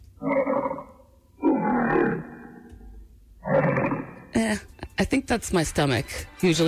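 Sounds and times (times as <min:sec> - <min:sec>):
original lion roar recorded for an early film studio logo: 0:00.2 - 0:04.4
speech: 0:04.4 - 0:06.6.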